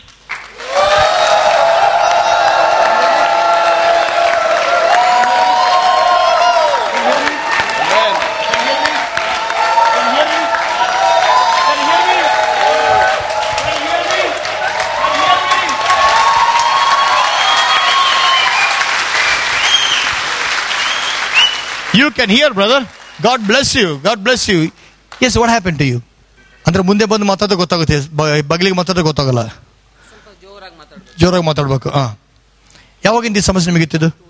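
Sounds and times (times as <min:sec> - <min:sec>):
crowd clapping: 0:00.0 - 0:24.4
shouting voices and whoops: 0:00.6 - 0:18.9
speech: 0:22.2 - 0:29.6, 0:31.2 - 0:32.2, 0:33.0 - 0:34.2.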